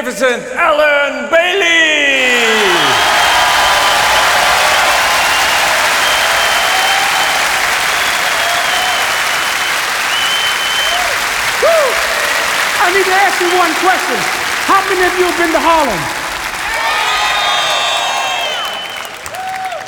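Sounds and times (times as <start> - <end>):
speech: 0.0 - 2.5, 12.9 - 16.2
audience applause: 2.2 - 19.8.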